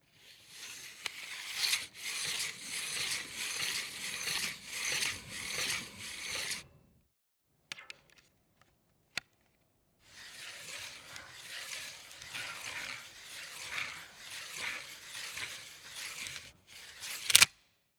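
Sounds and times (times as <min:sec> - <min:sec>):
steel tape measure extending and retracting: 0:00.2 - 0:06.7, 0:10.1 - 0:17.6.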